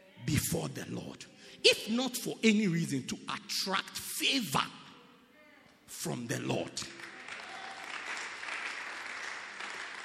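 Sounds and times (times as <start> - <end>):
speech: 0.4 - 4.8, 6.0 - 7.0
audience clapping: 6.8 - 10.0.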